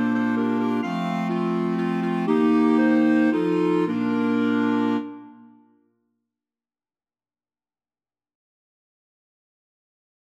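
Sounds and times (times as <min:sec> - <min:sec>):
clarinet choir: 0:00.0 - 0:05.7.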